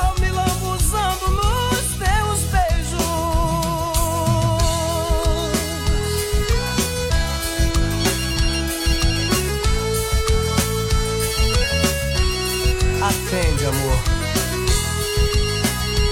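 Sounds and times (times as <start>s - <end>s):
forró song: 0.0s - 16.1s
telephone ringtone melody: 5.2s - 16.1s.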